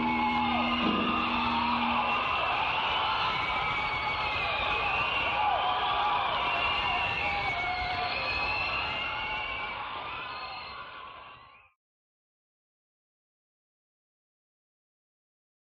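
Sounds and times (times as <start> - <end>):
audience: 0.0 - 11.7.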